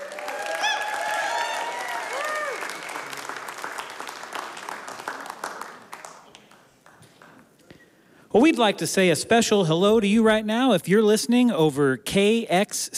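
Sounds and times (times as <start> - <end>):
crowd whooping and cheering: 0.0 - 3.4
crowd applauding after a live performance: 0.0 - 7.5
speech: 8.4 - 12.9.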